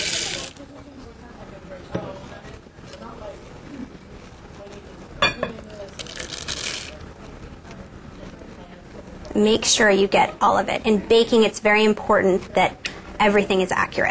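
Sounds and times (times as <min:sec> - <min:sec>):
chocolate chips added to cookie dough in a bowl: 0:00.0 - 0:00.7, 0:05.6 - 0:07.1
speech: 0:09.4 - 0:14.1.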